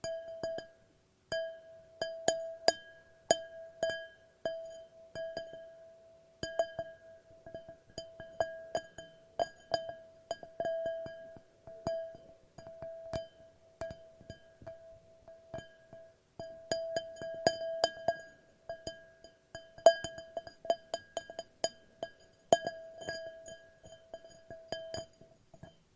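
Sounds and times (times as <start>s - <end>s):
glass tapped, ringing: 0.0s - 25.9s.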